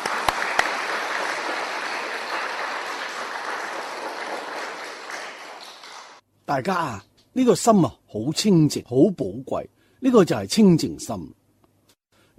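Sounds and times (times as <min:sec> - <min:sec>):
audience applause: 0:00.0 - 0:06.2
speech: 0:06.5 - 0:11.4.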